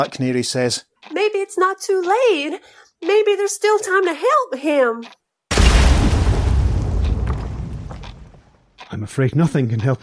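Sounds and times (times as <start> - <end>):
speech: 0.0 - 5.2, 8.9 - 10.0
explosion rumbling: 5.5 - 8.6.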